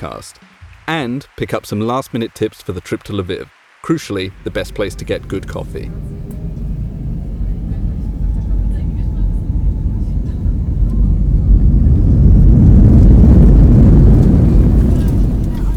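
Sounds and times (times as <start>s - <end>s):
speech: 0.0s - 6.1s
cabin roar of a passenger aircraft landing at Lviv Airport: 4.3s - 15.7s.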